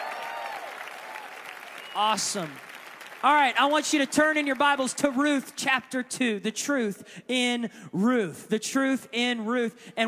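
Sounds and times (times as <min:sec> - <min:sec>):
audience applause: 0:00.0 - 0:05.6
speech: 0:02.0 - 0:10.0.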